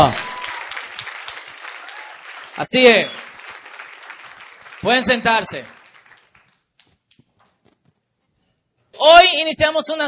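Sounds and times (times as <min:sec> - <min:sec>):
speech: 0:00.0 - 0:00.2, 0:02.6 - 0:03.2, 0:04.8 - 0:05.8, 0:09.0 - 0:10.0
loud audience applause: 0:00.0 - 0:06.6.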